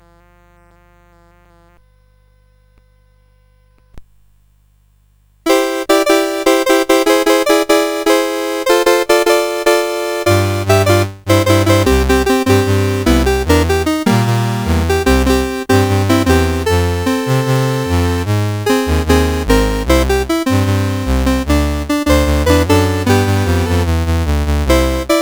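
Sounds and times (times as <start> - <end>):
CSG 8580 sound chip: 5.5 - 25.2.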